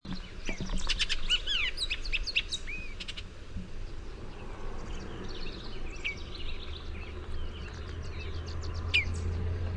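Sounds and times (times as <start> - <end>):
Bullock's Oriole whistled and chattering song: 0.1 - 3.3, 4.9 - 9.4.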